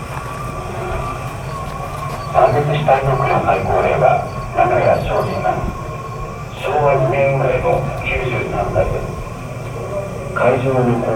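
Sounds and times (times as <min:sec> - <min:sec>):
steady low rumble at Yasukuni Shrine in Tokyo: 0:00.0 - 0:11.1
voices talking at Yasukuni Shrine in Tokyo: 0:00.2 - 0:11.1.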